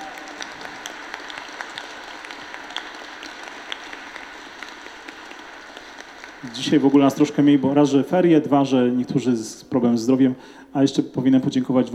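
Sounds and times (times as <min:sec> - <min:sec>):
audience applause: 0:00.0 - 0:08.4
speech: 0:06.4 - 0:11.9.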